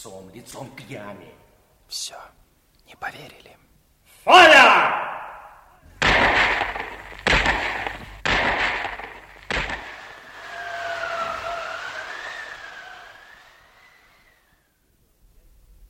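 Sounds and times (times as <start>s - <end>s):
speech: 0.0s - 5.2s
low noise: 0.0s - 15.8s
gunshots of an execution: 5.9s - 11.1s
wavering high-pitched whine: 6.0s - 14.6s.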